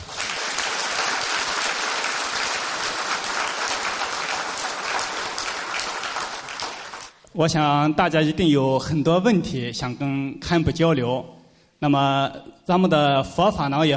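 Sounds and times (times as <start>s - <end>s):
warm applause from audience: 0.0s - 7.2s
speech: 7.4s - 13.9s.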